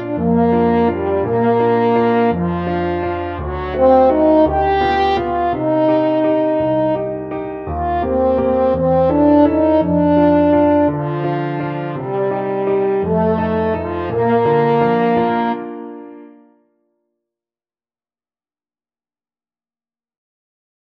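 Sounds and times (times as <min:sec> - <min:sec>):
french horn playing: 0:00.0 - 0:16.5.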